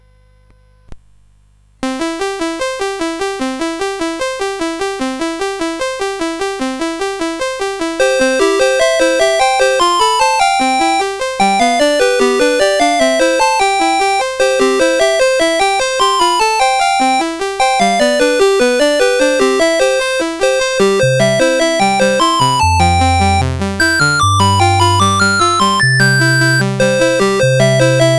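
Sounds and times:
CSG 8580 sound chip: 0:01.8 - 0:28.1.

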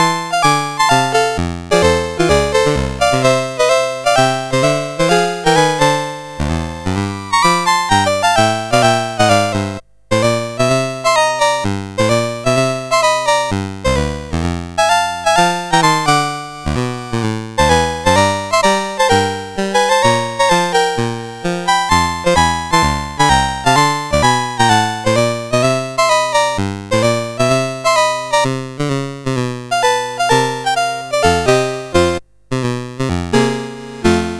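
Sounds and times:
blues chip music on CSG8580R5 sound chip: 0:00.0 - 0:28.5, 0:29.2 - 0:34.3.

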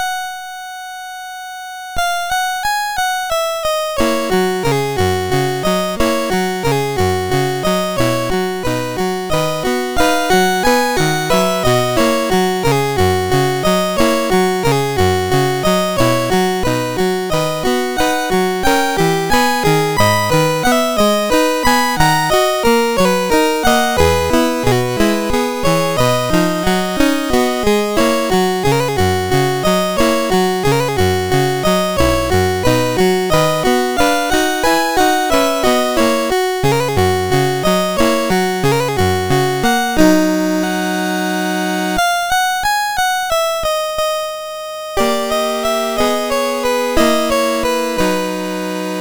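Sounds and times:
chiptune prelude on MOS6581R3 chip: 0:00.0 - 0:48.9.

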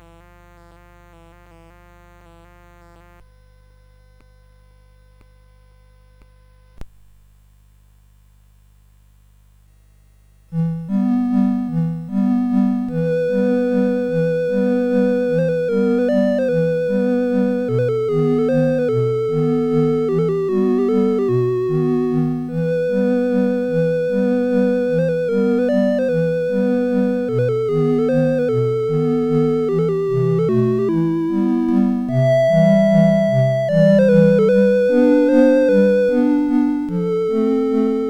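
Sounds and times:
CSG 8580 sound chip: 0:10.9 - 0:38.0.

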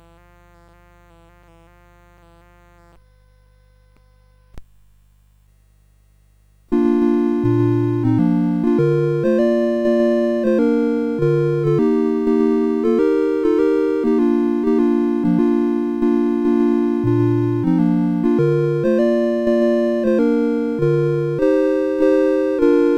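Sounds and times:
CSG 8580 sound chip: 0:06.7 - 0:22.9.

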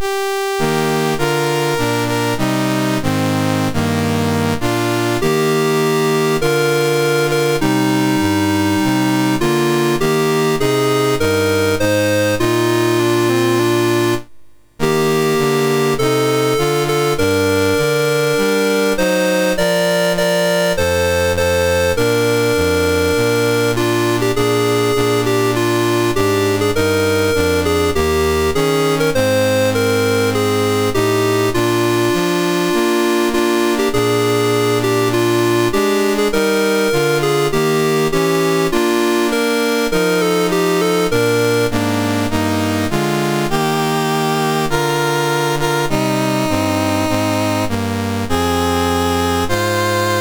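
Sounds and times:
national anthem played on MOS6581R3 chip: 0:00.0 - 0:50.1.

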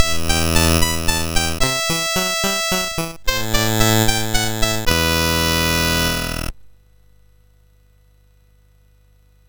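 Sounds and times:
MOS6581R4 SID chip music: 0:00.0 - 0:06.6.

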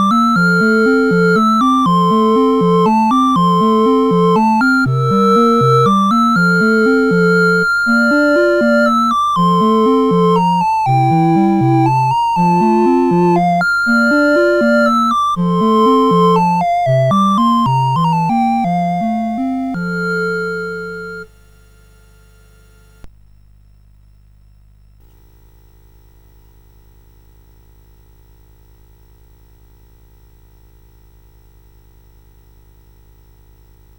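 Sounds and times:
CSG 8580 sound chip: 0:00.0 - 0:21.3.

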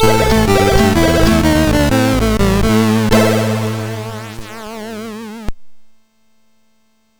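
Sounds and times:
MOS6581R4 SID chip music: 0:00.0 - 0:05.5.

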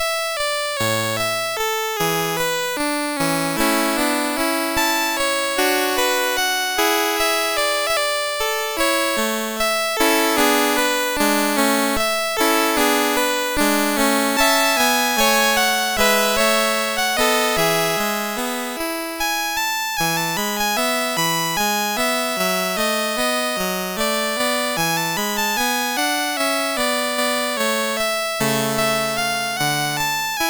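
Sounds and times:
gavotte on MOS 6581 sound chip: 0:00.0 - 0:30.4.

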